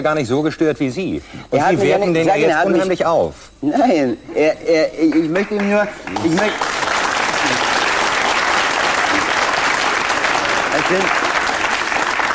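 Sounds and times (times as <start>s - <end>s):
speech: 0.0s - 6.8s, 10.8s - 11.3s
audience applause: 5.0s - 12.3s.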